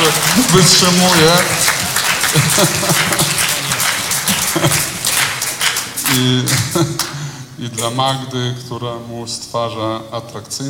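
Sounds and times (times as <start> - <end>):
audience applause: 0.0 - 7.1
laughter: 0.0 - 7.2
speech: 0.1 - 3.4, 4.3 - 4.9, 6.1 - 10.6.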